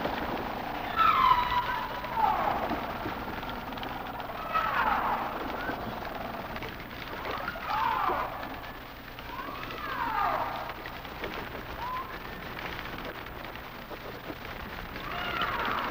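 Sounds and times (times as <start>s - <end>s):
humpback whale song with wavering phrases and sharp upsweeps: 0.0s - 15.8s.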